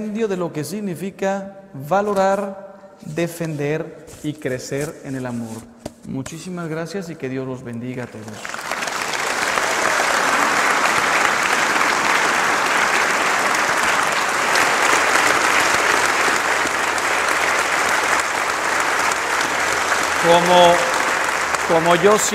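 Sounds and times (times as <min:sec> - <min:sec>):
speech: 0:00.0 - 0:08.6, 0:20.2 - 0:20.9, 0:21.7 - 0:22.3
audience applause: 0:08.3 - 0:22.3.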